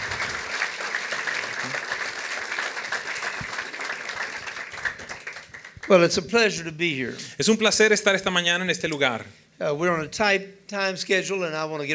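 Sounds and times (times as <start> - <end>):
audience applause: 0.0 - 6.0
speech: 5.9 - 11.9.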